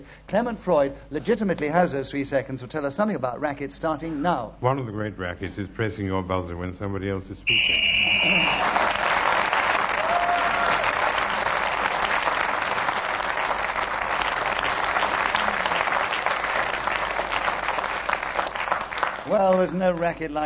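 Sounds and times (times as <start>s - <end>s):
speech: 0.0s - 9.0s, 19.6s - 20.4s
studio audience applause: 7.8s - 20.1s.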